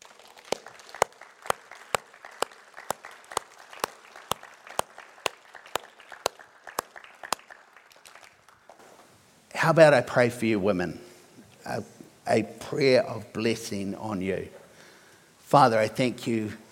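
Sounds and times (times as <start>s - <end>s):
audience applause: 0.0s - 8.8s
speech: 9.6s - 11.1s, 11.7s - 14.6s, 15.5s - 16.6s.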